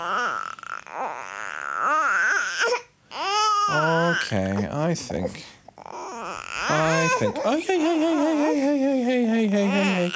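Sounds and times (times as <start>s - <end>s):
teething baby crying: 0.0s - 10.1s
speech: 3.7s - 5.5s, 6.7s - 10.1s.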